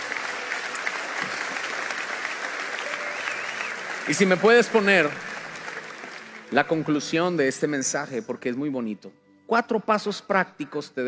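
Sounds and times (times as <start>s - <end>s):
audience applause: 0.0s - 7.9s
speech: 4.1s - 5.3s, 6.5s - 11.0s.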